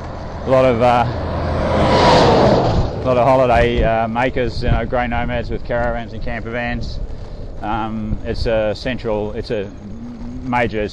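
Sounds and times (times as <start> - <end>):
road traffic passing near Broome: 0.0 - 4.7, 6.8 - 8.1, 9.4 - 10.9
speech: 0.4 - 1.2, 3.0 - 10.9.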